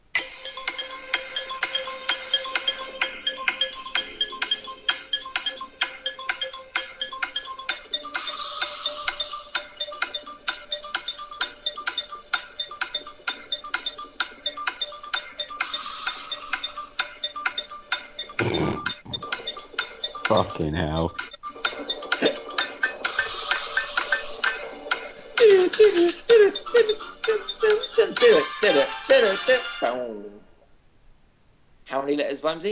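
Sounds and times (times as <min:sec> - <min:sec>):
game timer ticking: 0:00.2 - 0:29.6
sustained synthetic tone: 0:18.4 - 0:19.4
speech: 0:20.5 - 0:21.3, 0:29.4 - 0:30.5, 0:32.1 - 0:32.7.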